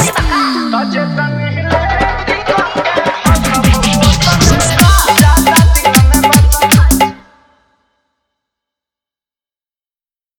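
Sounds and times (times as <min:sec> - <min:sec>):
dholak bass dance mix: 0:00.0 - 0:07.2.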